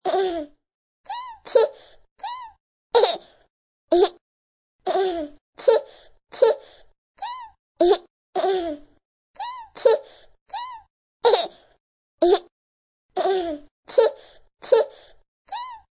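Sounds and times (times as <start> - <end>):
baby laughing: 1.1 - 3.2, 3.9 - 4.2, 4.9 - 11.6, 12.2 - 12.5, 13.2 - 15.9.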